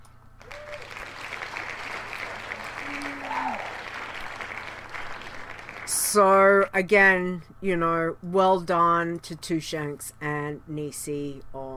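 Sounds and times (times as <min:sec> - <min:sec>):
crowd applause with cheering sound effect: 0:00.4 - 0:06.0
speech: 0:06.1 - 0:11.7.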